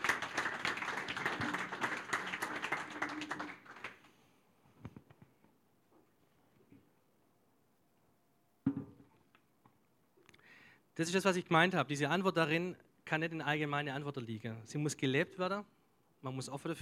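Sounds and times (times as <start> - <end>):
audience applause: 0.0 - 4.1
speech: 11.0 - 16.8.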